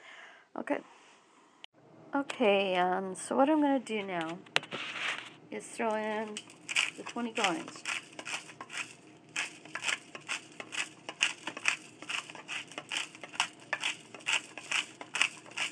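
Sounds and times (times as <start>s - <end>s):
speech: 0.6s - 1.0s, 2.1s - 4.9s, 5.5s - 7.9s
pepper grinder being twisted: 5.8s - 15.7s.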